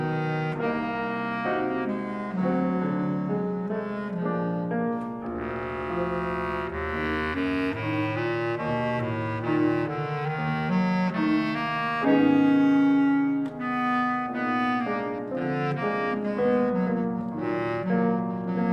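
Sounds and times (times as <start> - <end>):
bass clarinet playing a gypsy song: 0.0 - 18.7.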